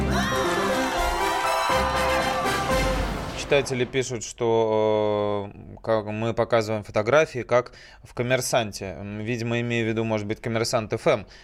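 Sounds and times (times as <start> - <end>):
applause: 0.2 - 3.5
speech: 3.5 - 11.4.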